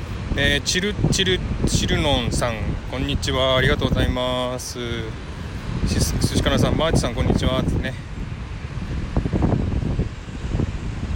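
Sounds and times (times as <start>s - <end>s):
strong wind blowing on microphone: 0.0s - 11.1s
speech: 0.4s - 8.1s.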